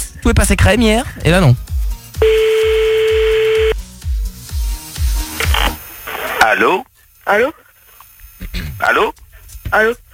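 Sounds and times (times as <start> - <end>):
speech: 0.2 - 1.6, 6.5 - 7.6, 8.4 - 10.0
thumping rhythmic beat: 1.5 - 5.7
telephone call being placed beep and tones: 2.2 - 3.8.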